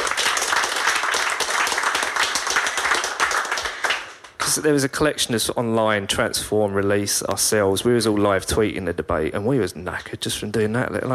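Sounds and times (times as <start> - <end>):
audience round of applause: 0.0 - 4.4
speech: 4.5 - 11.1.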